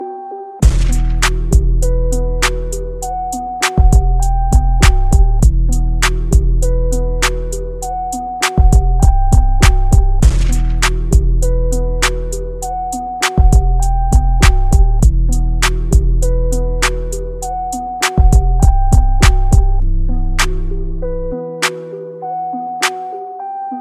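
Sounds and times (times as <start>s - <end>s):
instrumental music: 0.0s - 23.7s.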